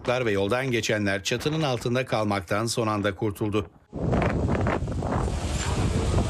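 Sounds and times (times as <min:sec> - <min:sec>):
speech: 0:00.0 - 0:04.5
strong storm wind in Esenler roaring into the microphone: 0:03.8 - 0:06.2.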